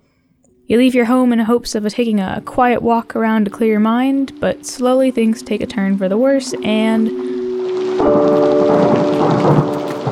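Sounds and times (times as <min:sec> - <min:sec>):
speech: 0:00.7 - 0:07.4, 0:08.0 - 0:09.6
rain: 0:05.2 - 0:10.1
thunder crash during a lightning strike: 0:06.8 - 0:10.1.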